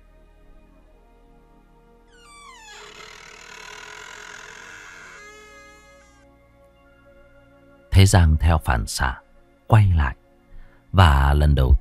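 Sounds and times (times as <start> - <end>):
door creaking open: 2.1 - 6.2
speech: 8.0 - 10.2, 10.9 - 11.7.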